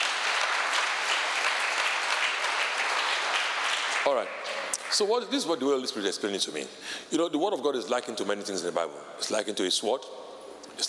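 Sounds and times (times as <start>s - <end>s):
audience applause: 0.0s - 5.1s
speech: 4.0s - 10.8s.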